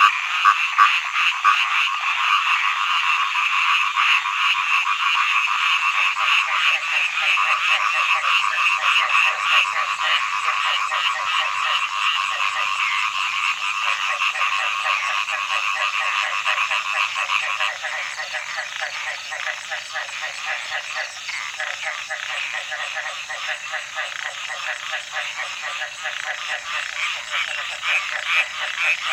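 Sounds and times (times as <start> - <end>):
frog chorus croaking: 0.0 - 29.1.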